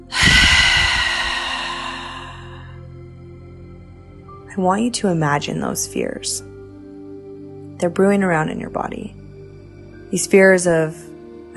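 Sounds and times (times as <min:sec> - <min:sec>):
deep inhale through the nose then forceful exhale through mouth: 0:00.0 - 0:02.8
speech: 0:04.6 - 0:06.6, 0:07.8 - 0:09.2, 0:10.1 - 0:11.5.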